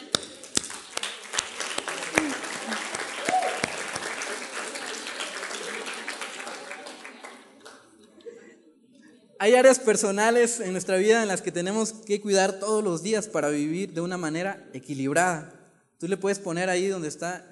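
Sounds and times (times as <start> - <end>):
audience applause: 0.0 - 8.0
speech: 9.4 - 17.5.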